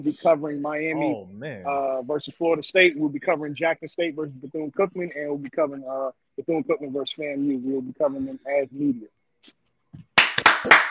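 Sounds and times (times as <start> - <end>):
speech: 0.0 - 9.6, 10.4 - 10.8
hands clapping: 10.0 - 10.8.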